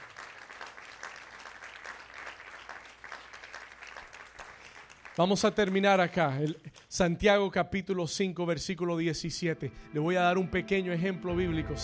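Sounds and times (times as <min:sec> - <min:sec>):
audience hand clapping applause: 0:00.0 - 0:06.2
speech: 0:05.2 - 0:11.8.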